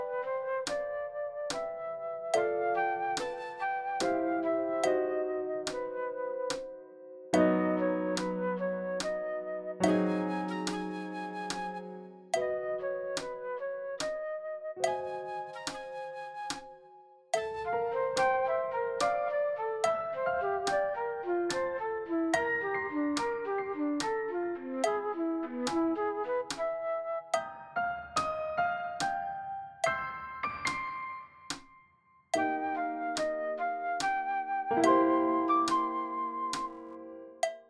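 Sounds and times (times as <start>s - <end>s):
fast flute: 0.0s - 6.6s, 7.6s - 28.4s, 32.4s - 37.1s
fast piano: 0.0s - 31.4s, 32.4s - 37.6s.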